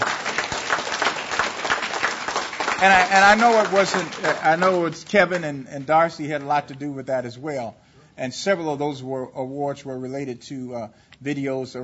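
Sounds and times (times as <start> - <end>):
crowd applauding: 0.0 - 6.5
speech: 2.8 - 11.8.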